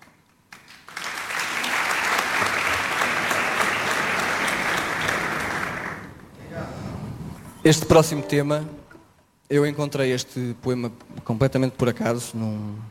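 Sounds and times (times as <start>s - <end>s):
audience applause at a live performance: 0.5s - 6.2s
speech: 7.6s - 8.8s, 9.5s - 12.8s.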